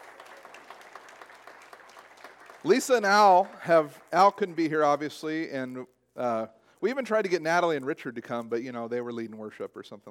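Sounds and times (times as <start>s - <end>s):
audience applause: 0.0s - 4.4s
speech: 2.6s - 10.0s.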